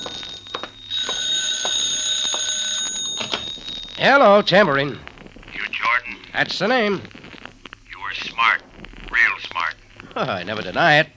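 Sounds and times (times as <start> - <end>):
telephone ringing with a shrill electric bell: 0.0 - 5.0
speech: 4.0 - 5.1, 6.4 - 7.2, 10.2 - 11.1.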